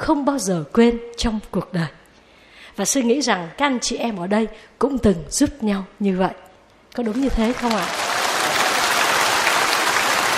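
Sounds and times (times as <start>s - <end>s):
speech: 0.0s - 2.0s, 2.8s - 8.0s
audience applause at a Buddhist monk's talk: 7.1s - 10.3s.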